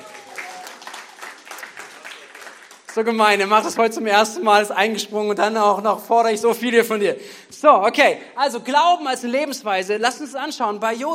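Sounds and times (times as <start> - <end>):
audience applause: 0.0 - 3.1
speech: 3.0 - 11.1.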